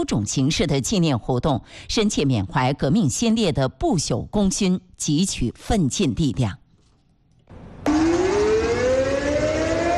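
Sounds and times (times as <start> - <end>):
speech: 0.0 - 6.6
air raid siren test: 7.5 - 9.9.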